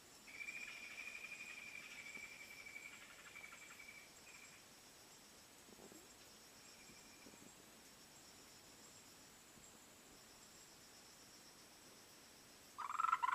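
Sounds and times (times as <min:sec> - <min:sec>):
frogs calling in a dense chorus of overlapping croaks: 0:00.3 - 0:04.7, 0:12.8 - 0:13.3.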